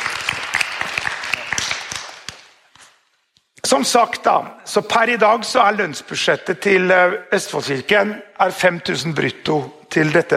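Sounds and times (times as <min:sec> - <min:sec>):
audience applause: 0:00.0 - 0:02.5
speech: 0:03.7 - 0:10.3.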